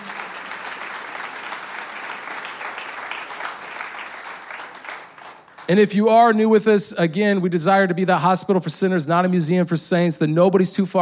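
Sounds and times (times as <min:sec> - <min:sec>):
church congregation applauding at Easter weekend services to thank volunteers: 0:00.0 - 0:05.9
speech: 0:05.7 - 0:10.9.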